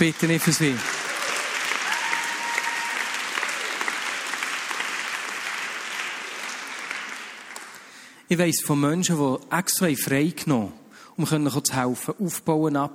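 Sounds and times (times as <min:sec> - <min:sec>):
speech: 0:00.0 - 0:01.0, 0:08.3 - 0:12.9
audience applause: 0:00.0 - 0:08.0.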